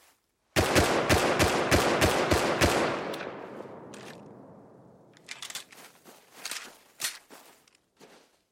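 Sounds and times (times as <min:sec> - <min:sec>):
semi-automatic rifle shooting: 0:00.6 - 0:05.1.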